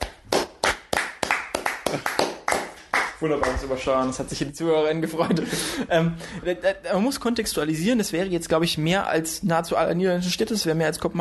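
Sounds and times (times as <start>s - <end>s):
applause: 0.0s - 3.8s
speech: 1.9s - 2.1s, 3.2s - 11.1s.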